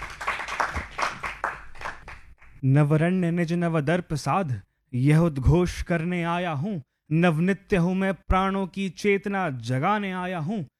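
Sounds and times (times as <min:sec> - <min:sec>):
audience clapping to welcome a performer onto a stage: 0:00.0 - 0:02.6
speech: 0:02.6 - 0:10.7.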